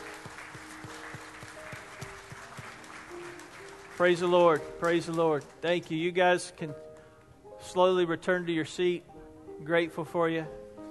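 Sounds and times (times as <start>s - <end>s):
audience applause: 0.0s - 6.0s
speech: 4.0s - 6.8s, 7.7s - 10.6s.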